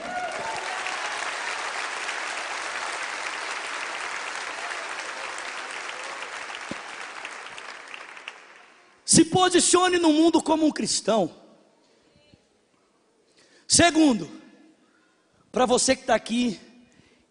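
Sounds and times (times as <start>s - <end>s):
audience applauding: 0.0s - 9.0s
speech: 9.1s - 11.4s, 13.8s - 14.4s, 15.6s - 16.7s.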